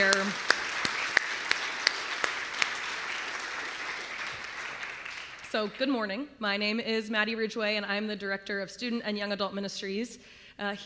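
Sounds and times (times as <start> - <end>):
audience applause: 0.0 - 5.8
speech: 5.5 - 10.8.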